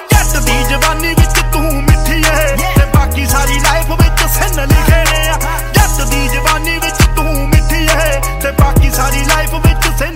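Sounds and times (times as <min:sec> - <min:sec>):
Punjabi beats ringtone: 0:00.1 - 0:09.9.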